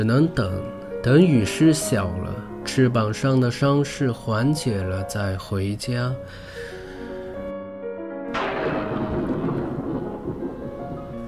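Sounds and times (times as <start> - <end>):
speech: 0.0 - 6.6
rumbling thunder: 8.3 - 11.2.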